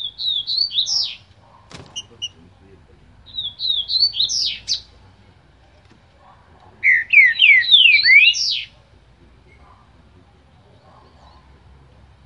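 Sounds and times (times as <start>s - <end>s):
green-winged saltator singing slurred whistles: 0.0s - 1.2s, 3.3s - 4.9s, 6.8s - 8.8s.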